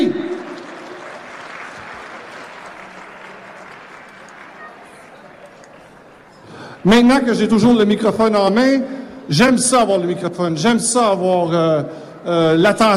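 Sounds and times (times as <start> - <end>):
sustained applause from a crowd: 0.0 - 6.2
speech: 6.8 - 12.9.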